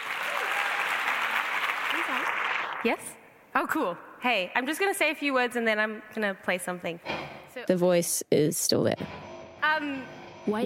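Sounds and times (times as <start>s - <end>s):
audience clapping at a writers' festival: 0.0s - 3.2s
speech: 2.2s - 9.2s, 9.8s - 10.6s.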